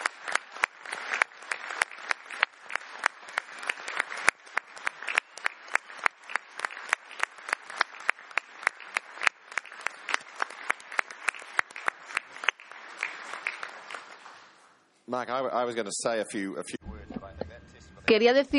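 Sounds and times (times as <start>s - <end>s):
audience applause: 0.0s - 14.8s
speech: 15.1s - 16.8s, 18.1s - 18.5s.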